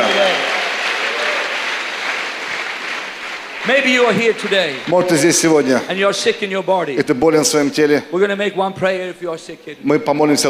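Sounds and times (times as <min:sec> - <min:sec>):
audience applause at a Christian conference worship gathering: 0:00.0 - 0:06.0
speech: 0:03.7 - 0:10.4.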